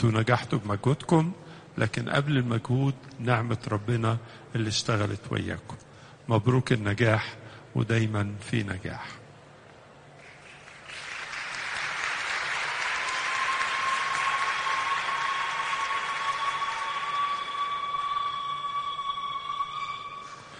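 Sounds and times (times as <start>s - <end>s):
speech: 0.0s - 9.2s
applause at a celebration of exam success: 10.2s - 19.4s.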